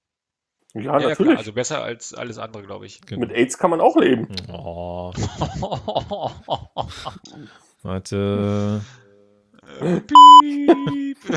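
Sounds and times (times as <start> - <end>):
speech: 0.7 - 9.0, 9.7 - 11.3
laughter: 5.0 - 7.4, 9.8 - 11.3
short high electronic beep: 10.2 - 10.5.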